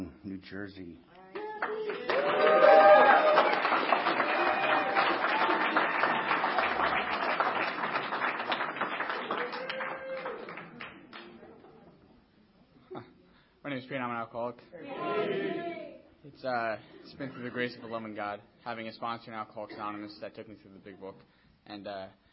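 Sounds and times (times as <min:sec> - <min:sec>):
speech: 0:00.4 - 0:03.3, 0:13.7 - 0:22.2
audience applause welcoming a speaker at an Alcoholics Anonymous meeting: 0:01.4 - 0:11.4.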